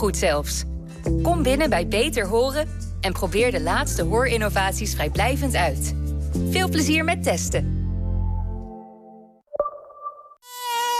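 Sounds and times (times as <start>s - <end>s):
speech: 0.0s - 7.7s
mosquito buzzing: 10.4s - 10.9s.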